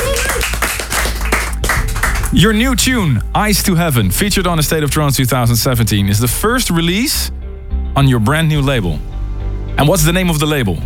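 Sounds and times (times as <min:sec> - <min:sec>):
round of applause for guest: 0:00.0 - 0:02.4
speech: 0:02.3 - 0:07.4, 0:08.0 - 0:09.1, 0:09.8 - 0:10.8.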